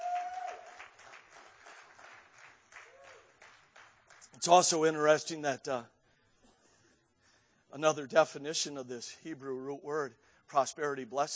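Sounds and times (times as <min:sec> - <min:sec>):
audience clapping hands: 0:00.0 - 0:04.5
speech: 0:04.4 - 0:06.0, 0:07.8 - 0:11.3.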